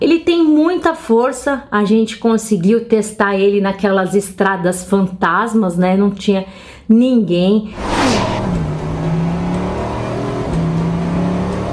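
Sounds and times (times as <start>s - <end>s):
speech: 0.0s - 8.6s
supercar engine revving while accelerating: 7.7s - 11.7s.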